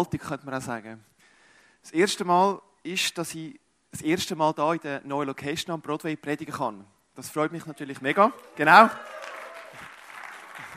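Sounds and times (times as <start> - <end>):
speech: 0.0 - 1.1, 1.8 - 9.2
audience applause: 8.4 - 10.7.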